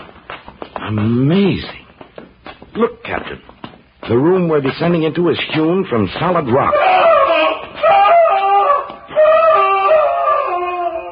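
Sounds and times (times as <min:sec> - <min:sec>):
speech: 0:00.8 - 0:01.8, 0:02.8 - 0:07.2
man screaming in agony: 0:06.6 - 0:11.0.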